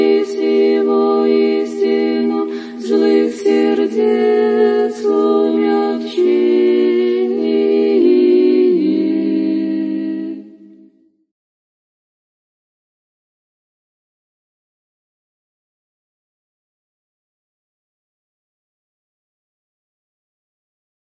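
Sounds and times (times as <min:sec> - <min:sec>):
Orthodox women's choir singing a prayer: 0:00.0 - 0:11.1.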